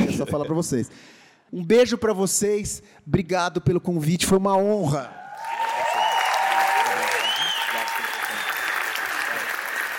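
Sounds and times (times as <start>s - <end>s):
speech: 0.2s - 5.6s
audience applause: 5.3s - 9.9s.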